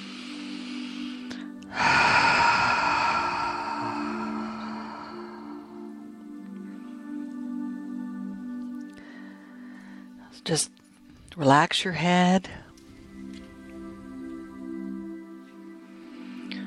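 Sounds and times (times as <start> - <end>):
deep breath drawn in during a relaxation exercise: 0.0 - 6.2, 15.8 - 16.6
soft sustained musical drone: 0.0 - 16.6
speech: 10.4 - 10.8, 11.4 - 12.6.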